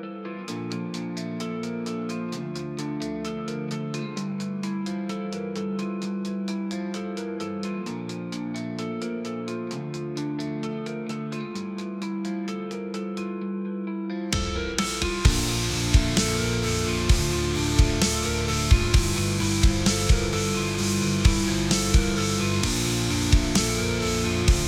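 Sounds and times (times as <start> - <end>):
rock music: 0.5 - 13.3, 14.3 - 24.6.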